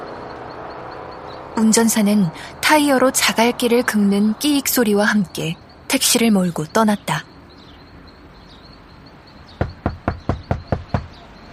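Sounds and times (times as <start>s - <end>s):
speech: 1.6s - 7.3s
knocking on a wooden door: 9.6s - 11.2s.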